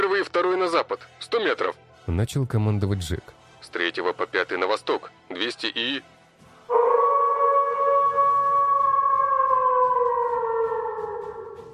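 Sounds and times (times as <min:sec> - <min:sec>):
speech: 0:00.2 - 0:06.9
wolf howling: 0:06.7 - 0:11.7.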